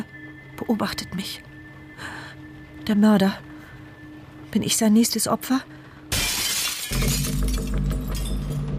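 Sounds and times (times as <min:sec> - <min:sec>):
speech: 0:00.6 - 0:02.2, 0:02.9 - 0:03.5, 0:04.5 - 0:05.8
glass pane of a terrace door being smashed: 0:06.1 - 0:08.6.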